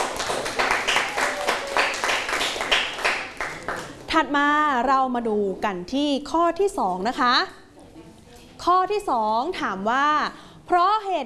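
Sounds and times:
classroom applause for a student: 0:00.0 - 0:04.0
speech: 0:04.2 - 0:07.6, 0:08.6 - 0:11.2.

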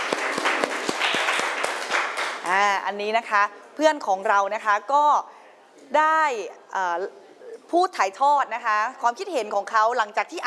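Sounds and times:
audience applause: 0:00.0 - 0:02.4
speech: 0:02.5 - 0:10.4.

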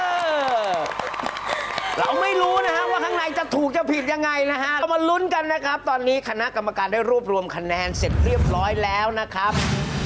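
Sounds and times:
audience clapping: 0:00.0 - 0:03.2
speech: 0:02.0 - 0:09.7.

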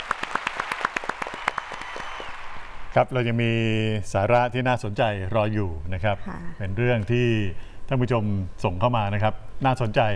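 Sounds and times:
hands clapping: 0:00.0 - 0:02.7
speech: 0:03.0 - 0:10.1.

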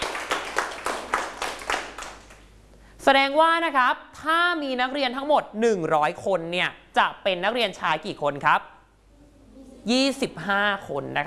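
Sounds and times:
classmates clapping in unison for a fellow student in a classroom: 0:00.0 - 0:02.5
speech: 0:03.0 - 0:08.7, 0:09.8 - 0:11.2.

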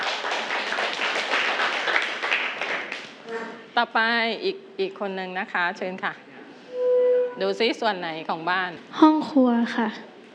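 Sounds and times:
children clapping for a classmate: 0:00.0 - 0:03.2
speech: 0:03.8 - 0:06.3, 0:07.4 - 0:10.1.

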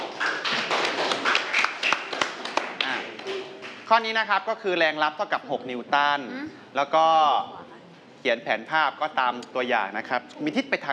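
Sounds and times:
group of students clapping hands: 0:00.0 - 0:03.9
speech: 0:03.9 - 0:07.6, 0:08.2 - 0:10.9.

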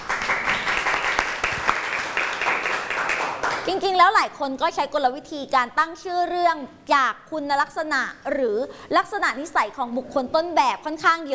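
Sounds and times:
classroom applause for a student: 0:00.0 - 0:03.7
speech: 0:03.7 - 0:11.3.

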